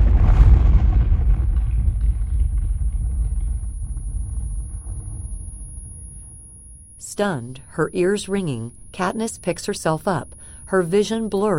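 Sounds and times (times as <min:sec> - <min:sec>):
fiery explosion blast: 0:00.0 - 0:07.0
speech: 0:07.2 - 0:11.5.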